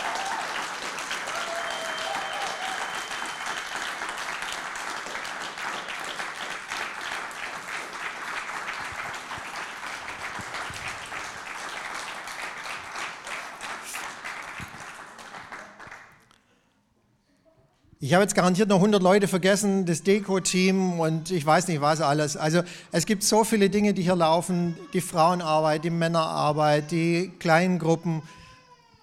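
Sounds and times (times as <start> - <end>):
audience applause: 0.0 - 16.2
speech: 18.0 - 28.4.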